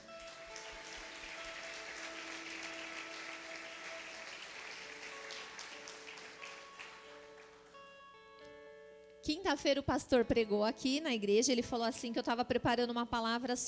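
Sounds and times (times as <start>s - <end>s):
audience applauding: 0.0s - 7.8s
speech: 9.2s - 13.6s.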